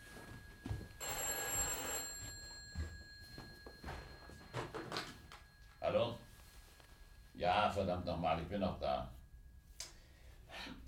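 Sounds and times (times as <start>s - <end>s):
telephone bell ringing: 0.0s - 7.8s
speech: 5.9s - 6.3s, 7.4s - 9.2s.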